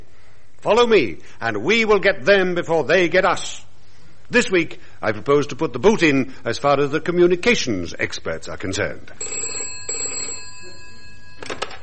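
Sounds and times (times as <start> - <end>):
speech: 0.6 - 3.7, 4.3 - 9.7
telephone bell ringing: 9.2 - 11.8.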